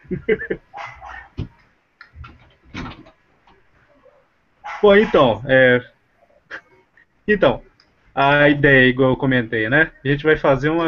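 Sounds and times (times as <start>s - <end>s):
speech: 0.1s - 0.7s, 4.8s - 5.9s, 7.3s - 10.8s
dogs barking: 0.7s - 1.4s, 4.6s - 5.4s.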